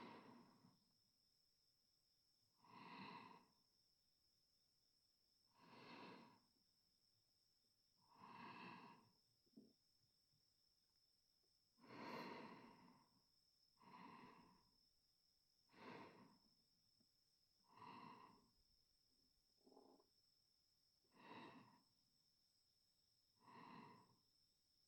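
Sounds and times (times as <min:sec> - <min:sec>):
sleeping breath: 0:00.0 - 0:00.6, 0:02.6 - 0:03.5, 0:05.5 - 0:06.5, 0:08.1 - 0:09.1, 0:11.8 - 0:13.2, 0:13.8 - 0:14.7, 0:15.7 - 0:16.4, 0:17.7 - 0:18.5, 0:21.1 - 0:21.9, 0:23.4 - 0:24.2.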